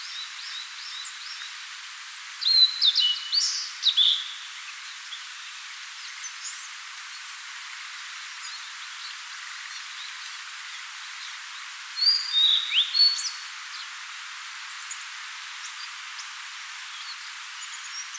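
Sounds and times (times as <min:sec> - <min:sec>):
quiet background hiss: 0:00.0 - 0:18.1
blue-and-white flycatcher song: 0:02.4 - 0:04.4, 0:12.0 - 0:13.4.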